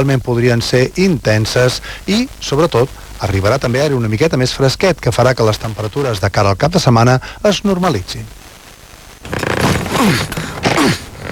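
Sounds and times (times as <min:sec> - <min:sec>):
speech: 0:00.0 - 0:08.4, 0:09.2 - 0:11.1
suitcase zipper straining to close: 0:09.2 - 0:11.3.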